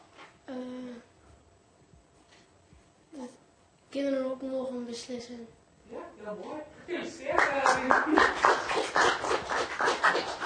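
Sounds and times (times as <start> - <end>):
speech: 4.0 - 10.4
audience applause: 7.2 - 10.4.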